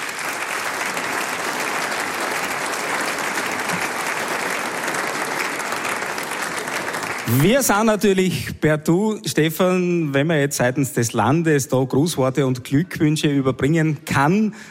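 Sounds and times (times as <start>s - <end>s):
audience applause: 0.0s - 8.2s
speech: 7.3s - 14.6s.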